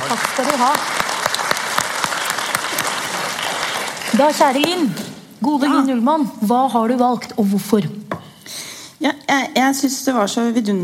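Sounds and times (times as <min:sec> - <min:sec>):
audience applause: 0:00.0 - 0:04.7
speech: 0:00.4 - 0:01.0, 0:04.2 - 0:10.8.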